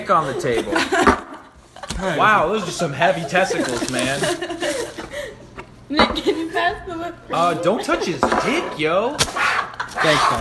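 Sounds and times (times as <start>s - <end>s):
laughter: 0.0s - 10.3s
friends playing cards in a house in the Hague: 3.1s - 5.7s, 8.1s - 10.3s.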